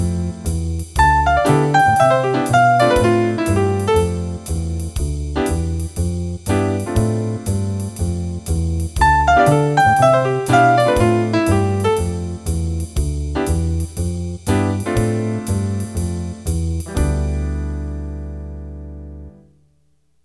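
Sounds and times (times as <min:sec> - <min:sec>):
jazz rhythm backing for D minor improvisation: 0:00.0 - 0:19.1.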